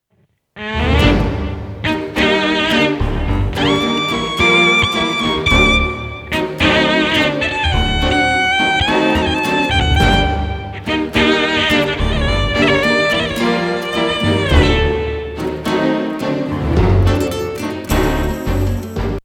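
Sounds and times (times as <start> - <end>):
tango music: 0.6 - 19.2.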